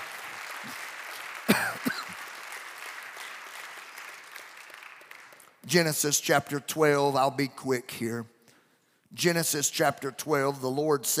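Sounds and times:
crowd clapping hands: 0:00.0 - 0:05.9
speech: 0:00.6 - 0:00.9, 0:05.7 - 0:08.3, 0:09.2 - 0:11.1.

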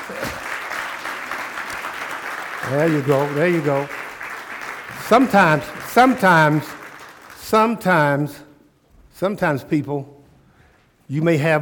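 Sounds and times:
audience hand clapping: 0:00.0 - 0:08.3
speech: 0:00.1 - 0:00.4, 0:02.7 - 0:04.0, 0:05.1 - 0:06.7, 0:07.5 - 0:08.4, 0:09.2 - 0:10.2, 0:11.1 - 0:11.6.

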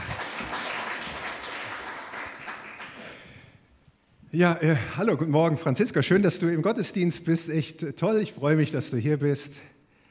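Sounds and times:
audience applause in a church service: 0:00.0 - 0:03.3
speech: 0:04.3 - 0:09.7.

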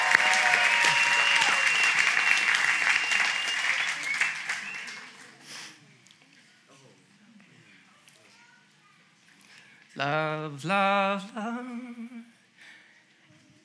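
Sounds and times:
audience applause: 0:00.0 - 0:05.4
speech: 0:10.0 - 0:11.4.

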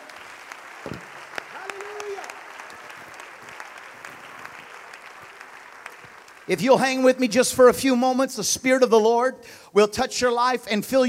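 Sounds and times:
audience clapping hands: 0:00.0 - 0:07.7
speech: 0:06.5 - 0:11.0.

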